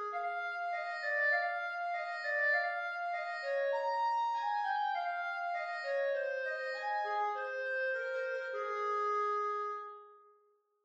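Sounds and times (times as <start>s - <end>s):
clarinet: 0.0s - 10.2s.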